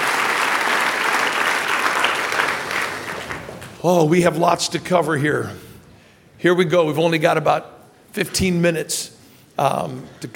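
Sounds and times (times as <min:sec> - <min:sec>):
audience applause: 0:00.0 - 0:03.8
speech: 0:03.8 - 0:05.7, 0:06.4 - 0:10.3.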